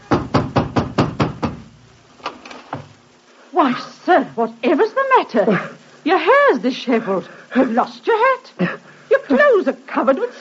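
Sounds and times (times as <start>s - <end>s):
hammering knocks on a landlady's door: 0.0s - 1.8s
speech: 3.6s - 10.3s.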